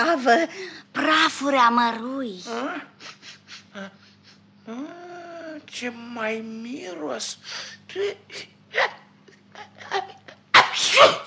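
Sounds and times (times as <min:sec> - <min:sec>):
speech: 0:00.0 - 0:03.2, 0:03.8 - 0:04.0, 0:04.7 - 0:05.0, 0:05.7 - 0:09.0, 0:11.0 - 0:11.2
person sneezing: 0:10.5 - 0:11.2.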